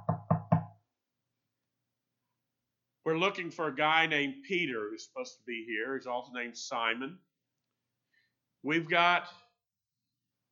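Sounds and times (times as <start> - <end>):
low solid knocking on a door: 0.0 - 0.8
speech: 3.1 - 7.3, 8.6 - 9.4.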